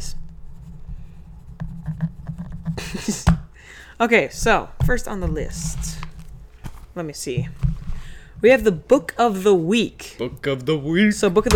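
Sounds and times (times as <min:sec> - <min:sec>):
scratchy writing strokes: 0:00.0 - 0:03.2
speech: 0:03.0 - 0:03.2, 0:04.0 - 0:06.0, 0:07.0 - 0:07.6, 0:08.4 - 0:11.5.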